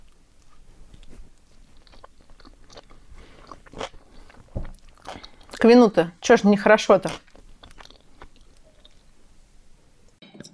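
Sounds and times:
chewing a skewered canapé of layered unsweetened cake: 0:00.0 - 0:05.8, 0:06.8 - 0:09.2
speech: 0:05.6 - 0:07.3.

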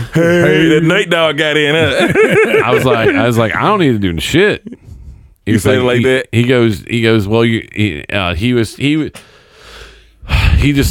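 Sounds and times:
laughter: 0:00.0 - 0:03.6
speech: 0:00.2 - 0:04.8, 0:05.5 - 0:09.3, 0:10.3 - 0:10.8
deep breath: 0:04.8 - 0:05.4, 0:09.2 - 0:10.6.

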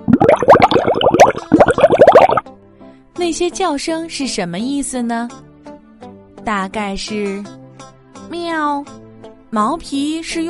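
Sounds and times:
fish splashing in water: 0:00.0 - 0:02.4
speech: 0:03.2 - 0:05.4, 0:06.4 - 0:07.6, 0:08.3 - 0:10.4.

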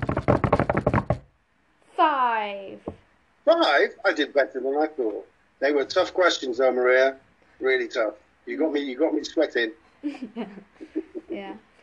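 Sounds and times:
drum roll tapped by hand on a tabletop: 0:00.0 - 0:01.3
speech: 0:02.0 - 0:11.7
laughter: 0:10.0 - 0:11.4.

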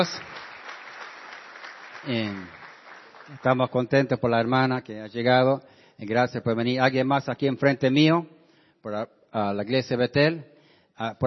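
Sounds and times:
speech: 0:00.0 - 0:00.3, 0:02.0 - 0:02.6, 0:03.3 - 0:11.2
audience applause: 0:00.0 - 0:03.7.

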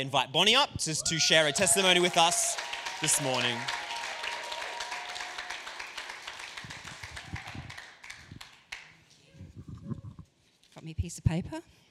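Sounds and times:
speech: 0:00.0 - 0:03.8, 0:11.3 - 0:11.8
audience applauding: 0:01.1 - 0:09.0.

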